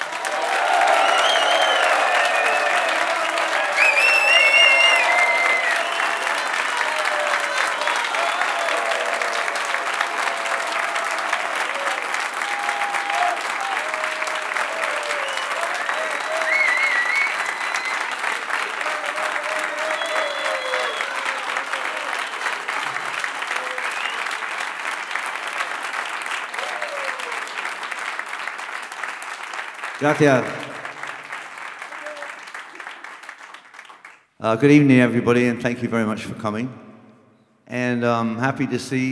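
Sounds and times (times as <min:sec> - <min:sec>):
whoops: 0:00.0 - 0:24.4, 0:26.5 - 0:27.7
audience applause welcoming a performer: 0:00.0 - 0:34.2
speech: 0:30.0 - 0:30.6, 0:34.4 - 0:36.8, 0:37.9 - 0:39.0.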